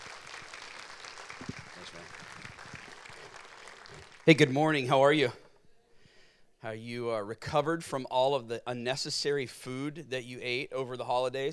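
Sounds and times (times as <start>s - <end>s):
audience applause: 0.0s - 4.5s
speech: 4.3s - 5.4s, 6.7s - 11.5s.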